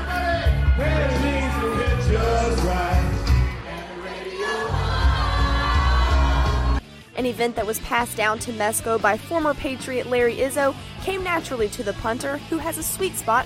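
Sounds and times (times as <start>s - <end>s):
crowd cheering and yelling: 0.0s - 6.8s
speech: 7.2s - 13.4s.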